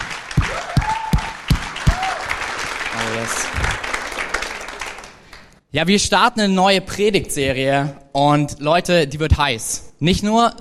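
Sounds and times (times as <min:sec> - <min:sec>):
audience applause in church: 0:00.0 - 0:05.6
cheers: 0:00.1 - 0:05.2
speech: 0:03.0 - 0:03.8, 0:05.7 - 0:10.5.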